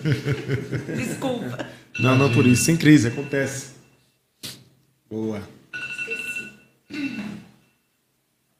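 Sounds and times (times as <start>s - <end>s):
laughter: 0.0s - 1.7s
speech: 0.0s - 3.8s, 5.1s - 5.6s
phone alarm ringing inside a handbag: 1.9s - 4.1s, 5.7s - 8.0s.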